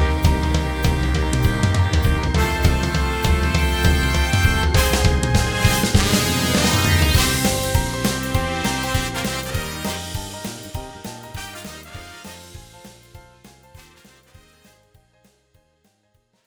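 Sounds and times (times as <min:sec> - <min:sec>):
jingle: 0:00.1 - 0:12.3.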